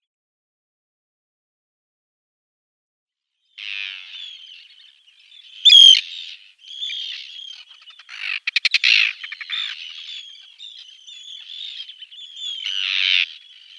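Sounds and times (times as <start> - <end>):
Arctic tern calling: 3.6 - 13.7.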